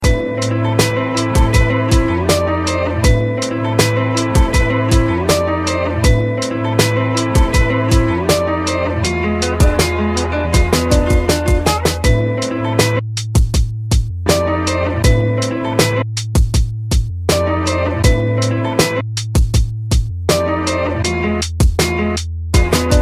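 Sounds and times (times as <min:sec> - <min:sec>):
hip hop beat: 0:00.0 - 0:22.9.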